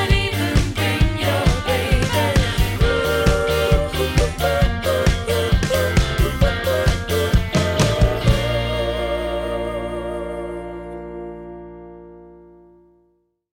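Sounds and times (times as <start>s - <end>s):
voices: 0.0s - 10.8s.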